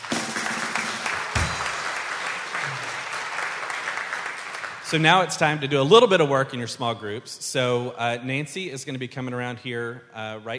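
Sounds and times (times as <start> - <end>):
round of applause: 0.0 - 5.5
speech: 4.9 - 10.5.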